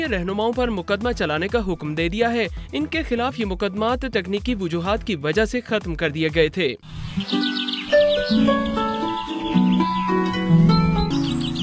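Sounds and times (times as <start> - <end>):
speech: 0.0 - 10.4
sparrows chirping near a Royal Mail letter box in Britain: 6.8 - 11.6.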